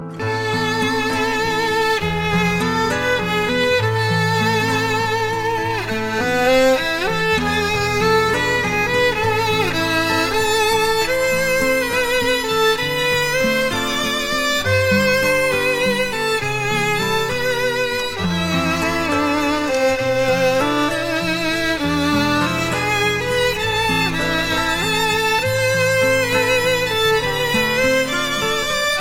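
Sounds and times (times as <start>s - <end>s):
violin: 0.0s - 29.0s.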